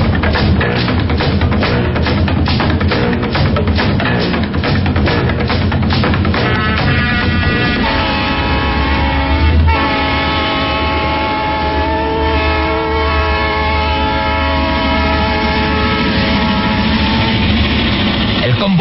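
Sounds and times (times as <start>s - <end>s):
steam train rumbling run: 0.0s - 18.8s
steam locomotive whistle: 6.4s - 17.8s.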